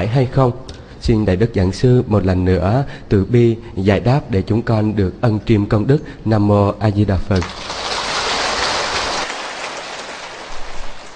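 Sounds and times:
speech: 0.0 - 7.8
audience applause: 7.5 - 11.1.

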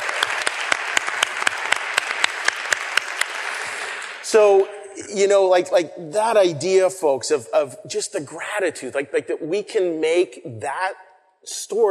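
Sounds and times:
crowd applause: 0.0 - 4.6
speech: 4.3 - 11.8.

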